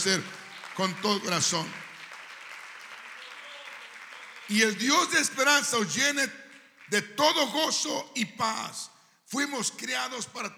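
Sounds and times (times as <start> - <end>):
speech: 0.0 - 1.8, 4.5 - 10.5
audience applause: 0.0 - 5.4.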